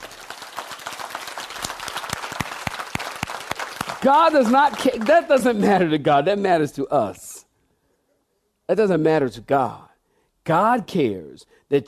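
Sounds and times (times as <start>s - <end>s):
audience clapping hands: 0.0s - 5.9s
speech: 4.0s - 7.2s, 8.7s - 11.8s.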